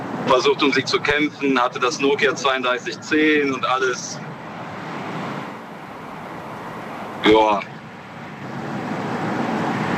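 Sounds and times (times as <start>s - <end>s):
road and engine noise of a car being driven: 0.0s - 9.9s
speech: 0.3s - 4.3s, 7.2s - 7.7s.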